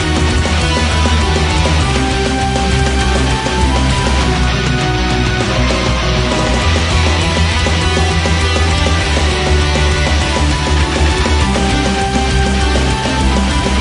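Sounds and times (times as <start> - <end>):
symphonic metal music: 0.0 - 13.7.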